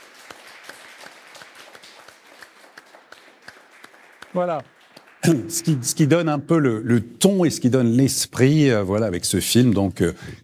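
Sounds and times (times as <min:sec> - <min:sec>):
audience applause: 0:00.0 - 0:06.3
speech: 0:04.4 - 0:10.4.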